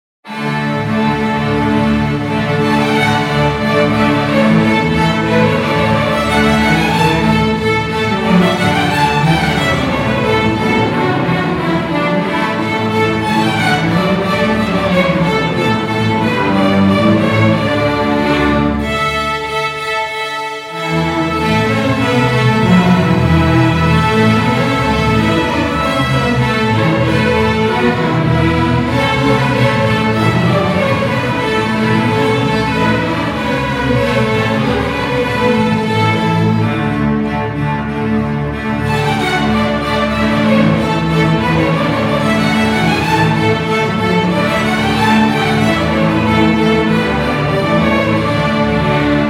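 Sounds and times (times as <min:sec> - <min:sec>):
violins: 0:00.2 - 0:49.2.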